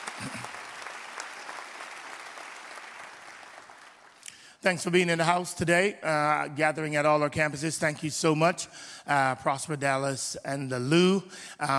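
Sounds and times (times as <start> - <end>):
audience applause in a large room: 0.0 - 4.2
speech: 4.6 - 11.7.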